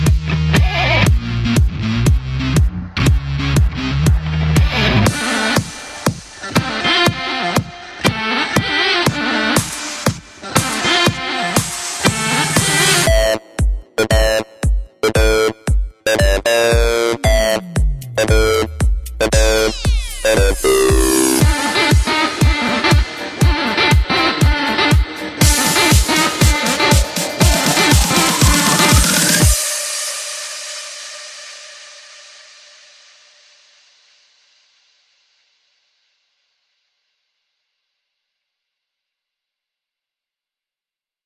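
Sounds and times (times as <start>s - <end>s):
future house guitars: 0.0s - 29.7s.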